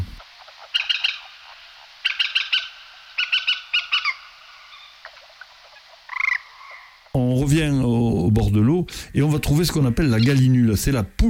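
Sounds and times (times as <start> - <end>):
common kestrel calling: 0.0 - 7.2, 9.5 - 10.8
speech: 7.2 - 11.2.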